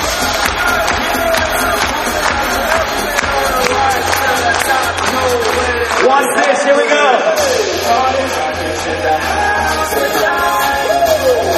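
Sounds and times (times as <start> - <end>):
large crowd double clapping in unison: 0.0 - 6.9
crowd cheering and shouting: 0.0 - 11.5.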